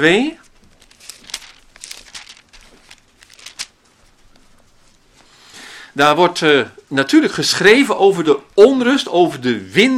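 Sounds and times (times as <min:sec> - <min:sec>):
speech: 0:00.0 - 0:00.4, 0:06.0 - 0:09.9
thin Bible pages being turned: 0:00.4 - 0:04.5.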